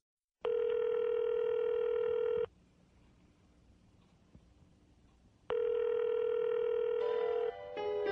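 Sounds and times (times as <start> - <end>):
dial tone through a headset: 0.4 - 2.5, 5.5 - 7.5.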